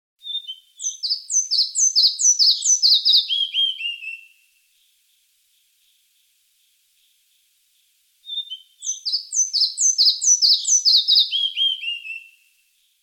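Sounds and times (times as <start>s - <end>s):
small flycatcher calling: 0.2s - 5.0s, 8.2s - 12.9s.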